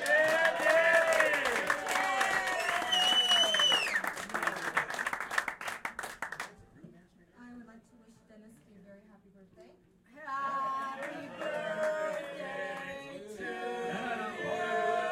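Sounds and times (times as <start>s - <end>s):
people whooping: 0.0s - 4.2s
crowd clapping at a party: 0.0s - 6.6s, 10.7s - 15.1s.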